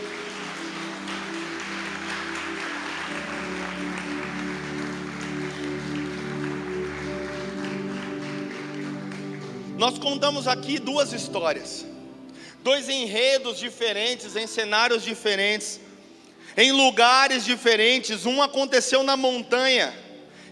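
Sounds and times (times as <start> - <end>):
audience applauding: 0.0 - 11.2
sustained organ-like chords: 0.0 - 16.6
speech: 9.8 - 11.9, 12.6 - 15.8, 16.6 - 20.0.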